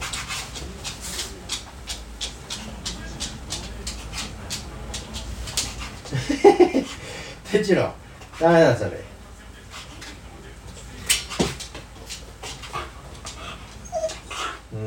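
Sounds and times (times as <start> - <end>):
laughter: 6.0 - 7.0
speech: 7.5 - 9.1
Hokkaido dog vocalizing as if talking: 13.3 - 14.7.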